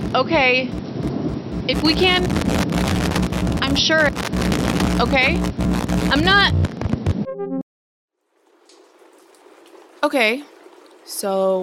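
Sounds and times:
heavy rain during a storm: 0.0 - 6.6
rumbling thunder during a storm: 0.0 - 6.6
speech: 0.1 - 6.7, 10.0 - 10.5, 11.1 - 11.6.

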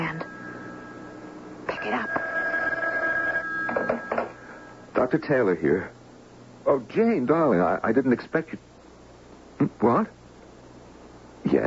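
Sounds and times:
telephone bell ringing: 0.0 - 4.9
speech: 1.8 - 2.2, 5.0 - 6.0, 6.6 - 8.7, 9.6 - 10.2.

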